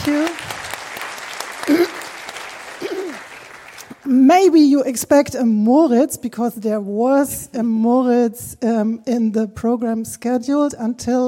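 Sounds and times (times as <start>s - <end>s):
speech: 0.0s - 0.4s, 4.2s - 11.2s
audience applause welcoming speakers: 0.0s - 4.1s.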